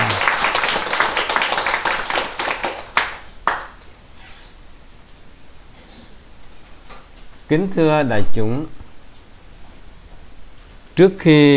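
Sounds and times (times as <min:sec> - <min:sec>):
audience clapping at a Buddhist dharma talk: 0:00.0 - 0:03.8
speech: 0:07.5 - 0:08.8, 0:11.0 - 0:11.5.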